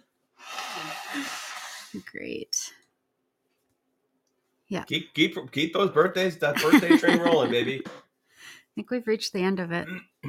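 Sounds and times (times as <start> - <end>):
nose blowing: 0.4 - 2.0
speech: 1.1 - 2.8, 4.7 - 10.2
laughter: 6.4 - 7.9.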